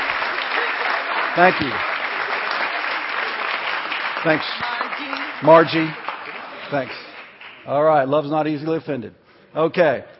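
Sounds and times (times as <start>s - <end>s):
audience applause: 0.0s - 7.9s
speech: 1.4s - 1.9s, 4.2s - 6.0s, 6.7s - 7.0s, 7.6s - 10.1s.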